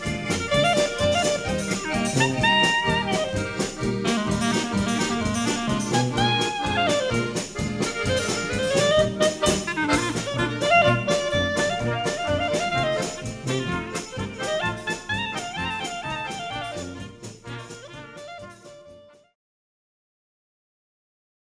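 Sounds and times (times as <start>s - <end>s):
clarinet polka: 0.0s - 19.4s.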